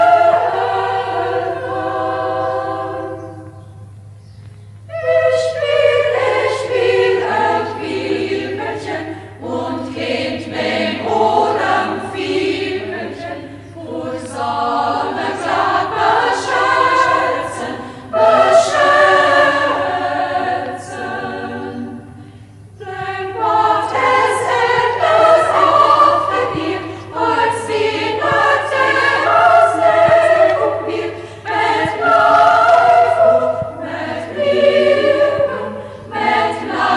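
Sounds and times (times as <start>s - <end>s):
chamber choir singing: 0.0s - 4.0s, 4.8s - 36.9s.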